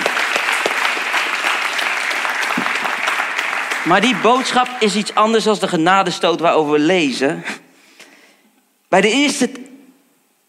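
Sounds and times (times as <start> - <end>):
crowd applauding: 0.0 - 6.5
speech: 3.9 - 7.6, 8.9 - 9.6.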